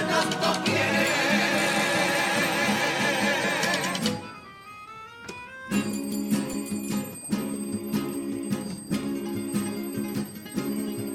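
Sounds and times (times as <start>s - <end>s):
alarm clock ringing: 0.7s - 4.0s, 5.7s - 11.1s.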